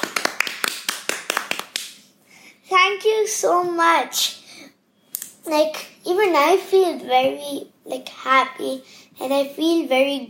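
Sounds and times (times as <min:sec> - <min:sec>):
crisp hand claps: 0:00.0 - 0:02.0
speech: 0:02.9 - 0:04.4, 0:05.5 - 0:10.2.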